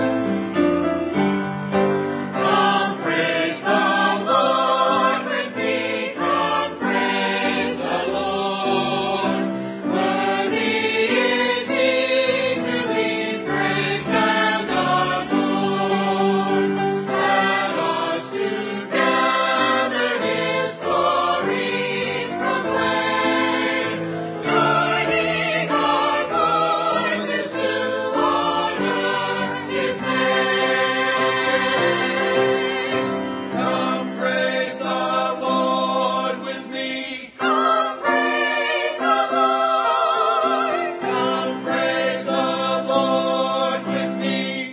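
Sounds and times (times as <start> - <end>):
choir singing: 0.2 - 44.7.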